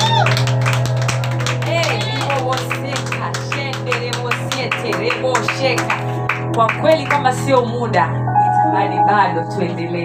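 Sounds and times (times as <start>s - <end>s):
church congregation rhythmic hand clapping during worship: 0.0s - 8.1s
speech: 6.6s - 8.2s, 8.8s - 10.0s.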